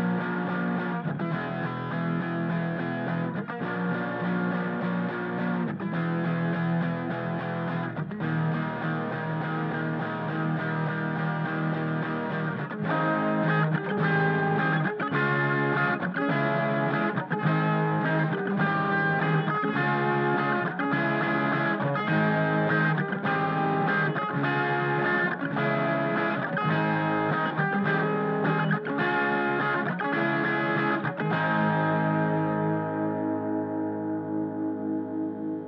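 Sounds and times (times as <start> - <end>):
guitar: 0.0 - 35.6.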